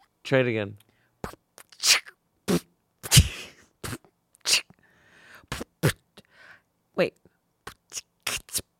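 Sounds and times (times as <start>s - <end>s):
person beatboxing a drum rhythm: 1.2s - 4.7s, 5.5s - 6.0s, 7.7s - 8.7s.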